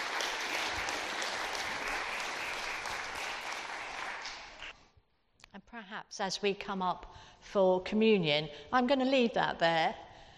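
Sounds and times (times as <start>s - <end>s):
audience applause: 0.0s - 4.7s
speech: 5.8s - 10.0s.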